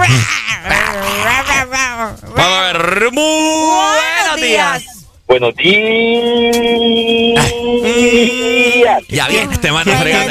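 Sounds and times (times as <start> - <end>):
person imitating a lion's roar: 0.0 - 4.0, 7.3 - 10.2
speech: 3.1 - 3.9, 4.5 - 10.2.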